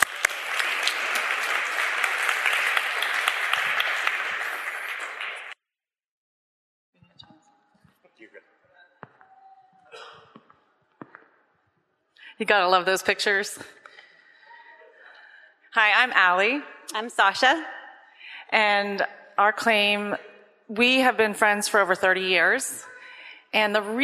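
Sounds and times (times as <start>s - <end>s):
audience applause: 0.0s - 5.6s
speech: 12.4s - 13.8s, 16.0s - 17.8s, 18.5s - 22.9s, 23.5s - 24.0s.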